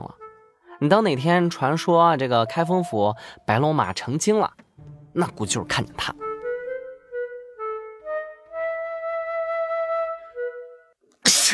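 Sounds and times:
soft sustained melody of held tones: 0.1s - 4.2s, 4.8s - 10.8s
speech: 0.8s - 4.6s, 5.2s - 6.2s
man reading account books sneezing: 11.2s - 11.5s.

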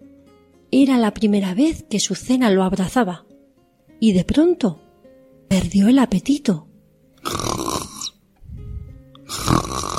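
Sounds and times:
speech: 0.7s - 3.3s, 4.0s - 4.8s, 5.5s - 7.5s
snoring: 7.2s - 8.2s, 9.2s - 9.9s.

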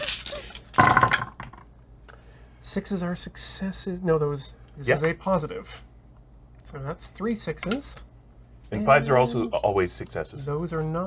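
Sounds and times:
dice being rolled: 0.0s - 1.6s
speech: 2.8s - 5.9s, 6.7s - 8.1s, 8.7s - 11.0s.

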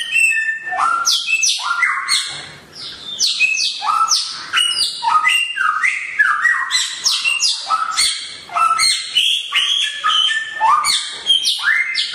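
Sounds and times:
songbird singing vigorously: 0.0s - 12.1s.

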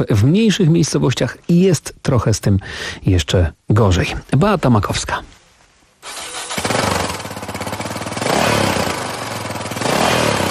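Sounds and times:
speech: 0.0s - 5.3s
motorcycle engine starting and revving over a rough idle: 6.0s - 10.4s.

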